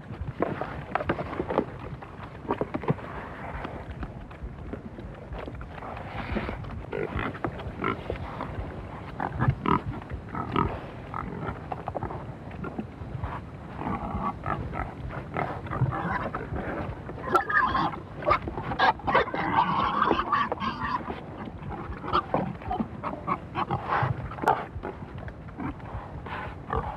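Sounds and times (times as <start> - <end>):
pigs grunting and snuffling while feeding: 0.0 - 26.9.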